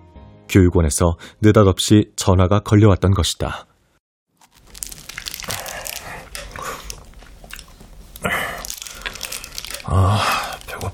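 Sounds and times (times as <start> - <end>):
speech: 0.5 - 3.7
person chewing and biting into bread: 4.4 - 10.9.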